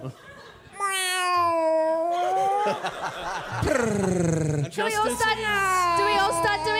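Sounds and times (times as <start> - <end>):
speech: 0.0 - 0.3, 2.6 - 6.7
person imitating a cat's meow: 0.8 - 2.6, 5.0 - 6.7
laughter-like noise: 2.4 - 4.2.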